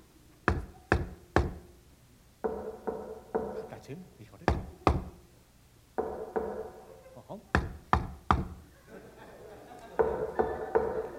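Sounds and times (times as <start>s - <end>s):
secret knock on a door: 0.5s - 1.7s, 2.4s - 3.8s, 4.5s - 5.2s, 6.0s - 6.8s, 7.6s - 8.6s, 10.0s - 11.0s
speech: 3.9s - 4.3s
laughter: 8.7s - 11.1s.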